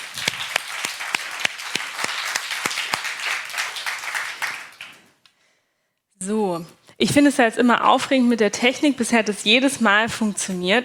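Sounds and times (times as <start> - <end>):
audience applause: 0.0 - 5.1
speech: 6.2 - 10.8.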